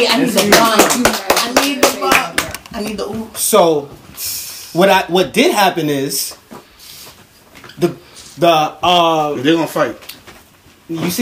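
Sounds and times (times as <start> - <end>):
speech: 0.0 - 1.3, 3.3 - 4.0, 4.7 - 6.4, 7.8 - 10.1, 10.9 - 11.2
hand claps: 0.3 - 2.7.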